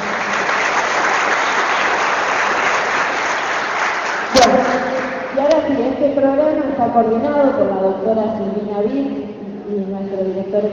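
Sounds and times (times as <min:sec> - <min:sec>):
audience applause: 0:00.0 - 0:05.4
speech: 0:06.2 - 0:10.7.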